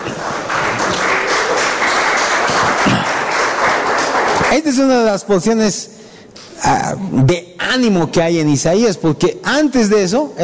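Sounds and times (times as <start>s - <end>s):
audience applause: 0.0s - 4.9s
speech: 4.5s - 6.0s, 6.7s - 10.4s.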